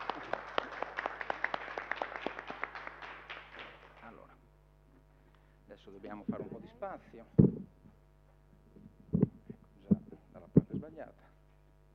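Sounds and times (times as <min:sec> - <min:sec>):
smattering of applause: 0:00.0 - 0:04.4
speech: 0:05.9 - 0:07.6.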